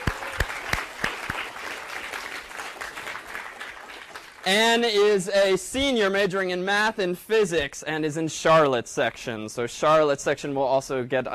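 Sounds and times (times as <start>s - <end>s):
audience applause: 0.0s - 5.1s
speech: 4.4s - 11.3s.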